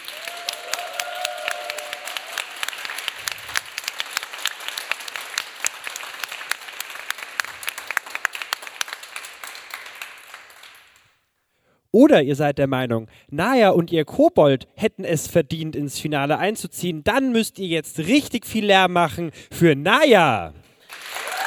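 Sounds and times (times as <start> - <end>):
audience applause: 0.0 - 11.0, 20.8 - 21.4
speech: 12.0 - 20.6.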